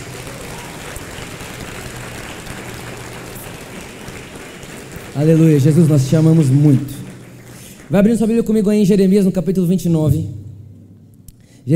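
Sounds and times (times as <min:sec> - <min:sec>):
audience applauding: 0:00.0 - 0:09.1
speech: 0:05.2 - 0:07.0, 0:07.9 - 0:10.4.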